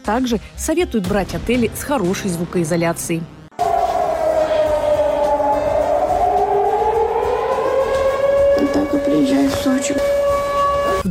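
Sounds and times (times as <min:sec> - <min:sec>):
speech: 0:00.0 - 0:03.4, 0:08.9 - 0:10.2
air raid siren wailing: 0:03.5 - 0:11.0.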